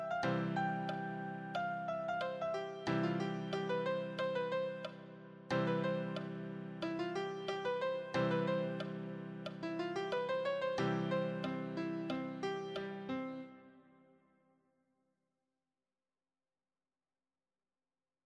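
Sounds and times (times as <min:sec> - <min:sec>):
easy solo piano: 0:00.0 - 0:14.0.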